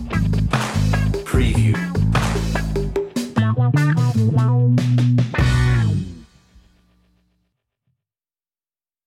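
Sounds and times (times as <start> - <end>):
underscore music without keyboards: 0.0 - 7.2.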